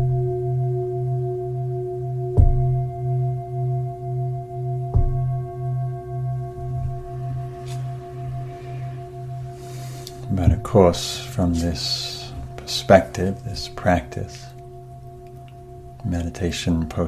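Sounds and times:
meditation bell ringing: 0:00.0 - 0:17.0
speech: 0:10.7 - 0:12.1, 0:12.7 - 0:14.5, 0:16.0 - 0:17.0.

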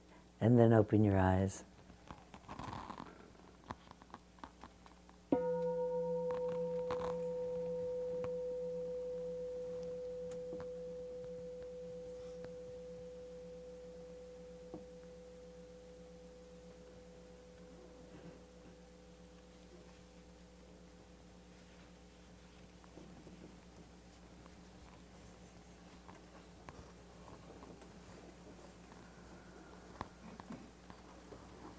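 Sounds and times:
speech: 0:00.4 - 0:01.7
meditation bell ringing: 0:05.3 - 0:19.3
soft rustling: 0:06.0 - 0:13.9, 0:18.0 - 0:31.7.

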